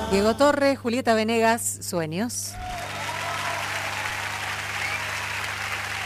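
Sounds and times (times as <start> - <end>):
speech: 0.1 - 2.8
crowd applauding: 2.6 - 6.0.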